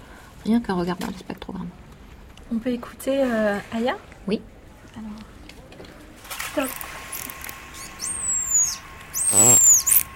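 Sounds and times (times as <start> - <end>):
speech: 0.4 - 1.8, 2.5 - 5.3, 6.6 - 7.0, 9.3 - 9.6
dolphin signature whistles: 7.7 - 10.1.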